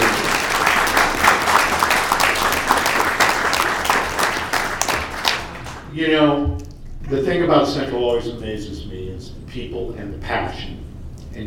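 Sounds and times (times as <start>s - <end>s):
crowd applauding: 0.0s - 5.9s
speech: 7.1s - 11.4s.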